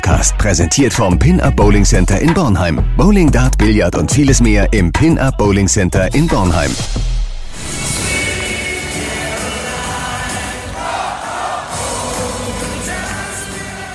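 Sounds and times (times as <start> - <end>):
speech: 0.1 - 7.1
basketball crowd cheering after the first home win of the season: 8.5 - 13.9.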